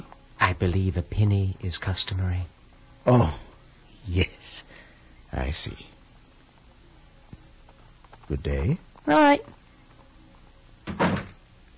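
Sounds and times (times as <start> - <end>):
speech: 0.6 - 3.4, 4.0 - 5.9, 8.3 - 9.6
door closing: 10.8 - 11.4.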